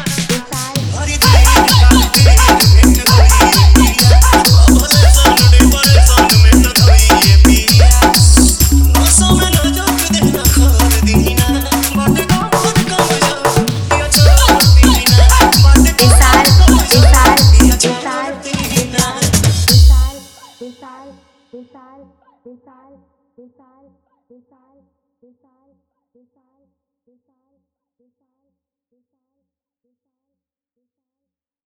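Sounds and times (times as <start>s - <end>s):
Bhojpuri DJ remix song: 0.0s - 20.6s.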